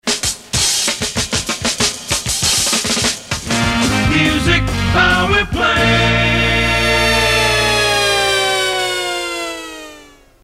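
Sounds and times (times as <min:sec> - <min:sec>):
instrumental music: 0:00.0 - 0:10.4.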